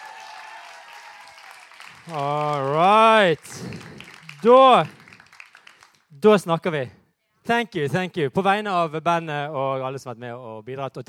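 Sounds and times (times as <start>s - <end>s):
audience applause: 0.0s - 6.1s
speech: 2.1s - 5.0s, 6.2s - 11.0s.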